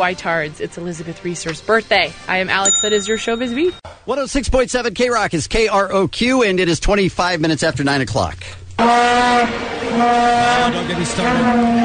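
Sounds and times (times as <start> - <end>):
speech: 0.0 - 11.8
plastic vuvuzelas blaring: 8.8 - 11.8.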